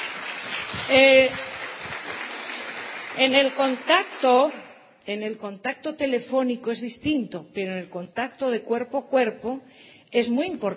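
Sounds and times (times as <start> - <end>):
audience applause: 0.0 - 4.3
speech: 0.9 - 1.5, 3.2 - 10.7.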